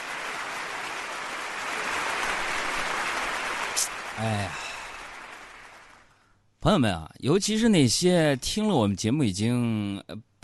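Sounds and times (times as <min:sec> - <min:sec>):
audience applause: 0:00.0 - 0:06.1
speech: 0:04.2 - 0:04.6, 0:06.6 - 0:10.4.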